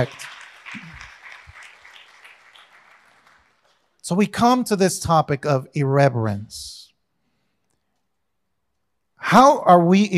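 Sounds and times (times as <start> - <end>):
speech: 0.0 - 1.0, 4.1 - 6.8, 9.2 - 10.1
audience clapping: 0.0 - 4.6.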